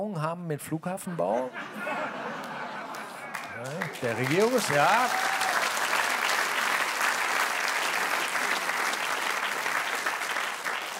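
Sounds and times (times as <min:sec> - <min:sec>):
speech: 0:00.0 - 0:02.1, 0:03.6 - 0:05.4
laughter: 0:01.1 - 0:05.2
audience applause: 0:02.4 - 0:10.9.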